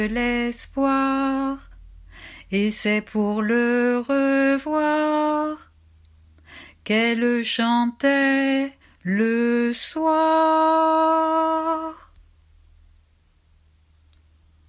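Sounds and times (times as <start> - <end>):
person singing lyrics and melody: 0.0 - 1.8, 2.5 - 5.7, 6.8 - 12.2.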